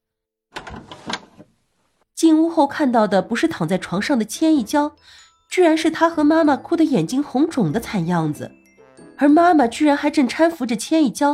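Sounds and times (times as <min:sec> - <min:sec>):
door opening: 0:00.5 - 0:01.5
speech: 0:02.2 - 0:08.6, 0:09.2 - 0:11.3.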